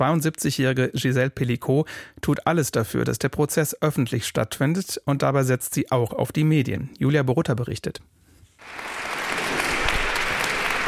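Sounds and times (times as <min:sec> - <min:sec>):
speech: 0:00.0 - 0:08.8
crowd applauding outside a courthouse in Avignon: 0:08.6 - 0:10.8.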